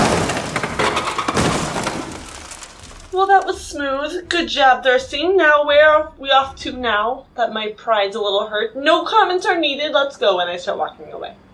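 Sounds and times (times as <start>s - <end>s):
garbage truck crashing as it lands: 0.0s - 5.4s
speech: 3.2s - 11.4s.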